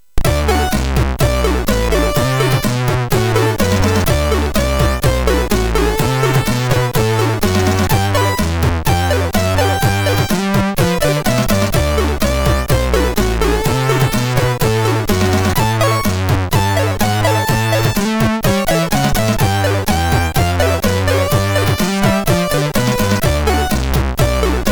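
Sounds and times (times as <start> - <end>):
blues on MOS6581 sound chip: 0.2 - 24.6.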